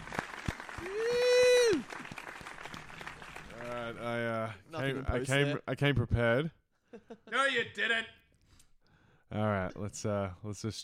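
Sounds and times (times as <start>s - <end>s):
group clapping: 0.0s - 4.2s
whooping cheer: 0.7s - 2.2s
speech: 4.9s - 8.2s, 9.3s - 10.8s.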